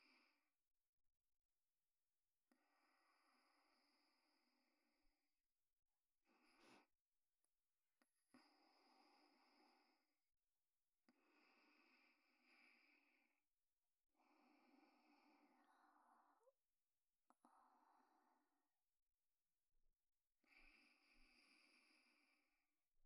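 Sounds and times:
sleeping breath: 2.5s - 4.8s, 6.2s - 7.0s, 8.3s - 10.2s, 11.1s - 13.4s, 14.2s - 16.6s, 17.3s - 18.6s, 20.4s - 22.6s.

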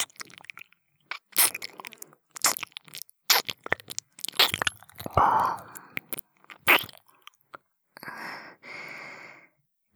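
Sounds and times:
ASMR ear licking sounds: 0.0s - 7.6s.

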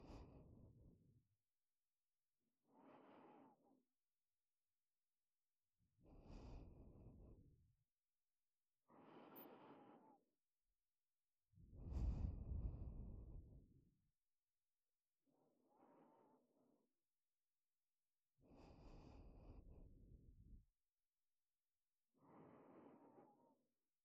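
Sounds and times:
breathing in ASMR on the right side: 0.0s - 0.9s, 2.6s - 3.8s, 6.1s - 7.4s, 8.9s - 10.2s, 11.8s - 13.3s, 15.6s - 16.6s, 18.4s - 20.6s, 22.2s - 23.6s.

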